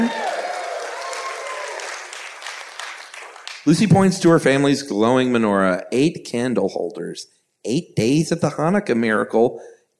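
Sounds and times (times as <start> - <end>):
audience applause: 0.0 - 3.7
speech: 3.7 - 9.9.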